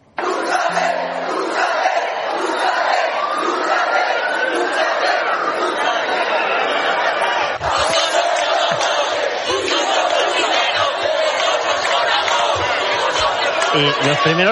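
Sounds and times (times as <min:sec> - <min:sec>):
crowd shouting at the Sol protest camp: 0:00.0 - 0:14.5
laughter: 0:00.2 - 0:14.5
speech: 0:13.8 - 0:14.5.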